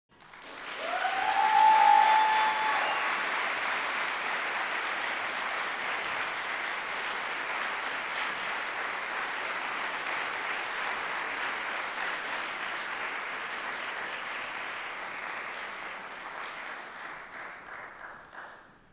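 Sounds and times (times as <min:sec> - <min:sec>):
applause: 0:00.1 - 0:18.9.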